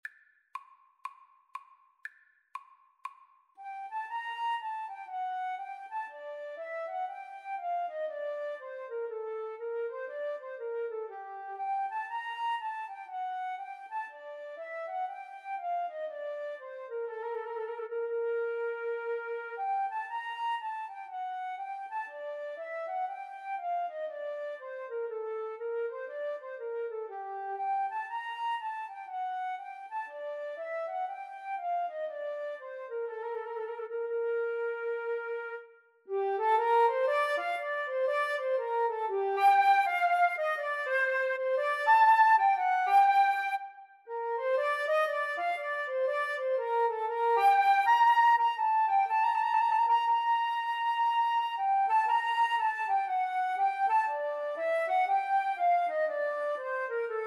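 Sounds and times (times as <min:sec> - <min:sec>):
bourree flute and clarinet duet: 0:03.6 - 0:57.2.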